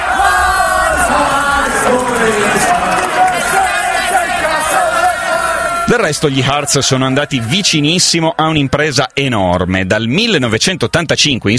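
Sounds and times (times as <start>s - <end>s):
football fans cheering and chanting: 0.0s - 11.0s
speech: 5.9s - 11.5s.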